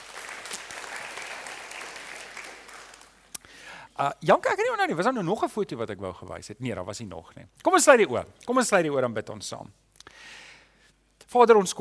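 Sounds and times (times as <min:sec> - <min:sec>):
audience applause: 0:00.0 - 0:03.3
speech: 0:04.0 - 0:10.4, 0:11.3 - 0:11.7.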